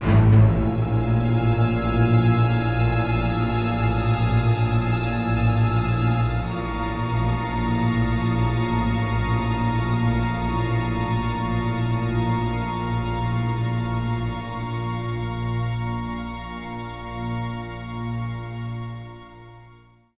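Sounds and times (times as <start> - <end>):
string instrument: 0.0 - 20.1.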